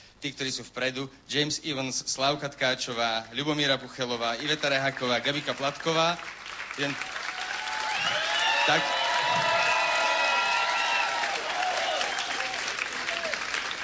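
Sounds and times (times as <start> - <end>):
speech: 0.2 - 7.2, 8.7 - 9.0
applause: 4.4 - 13.8.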